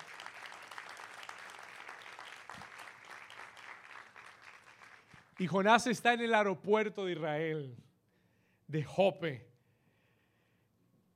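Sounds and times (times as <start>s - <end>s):
audience applause: 0.0s - 5.5s
speech: 5.4s - 7.9s, 8.7s - 9.5s.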